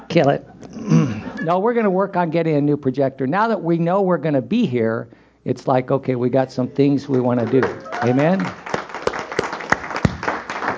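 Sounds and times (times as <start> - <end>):
speech: 0.1 - 8.6
audience applause in a church gathering: 7.0 - 10.7.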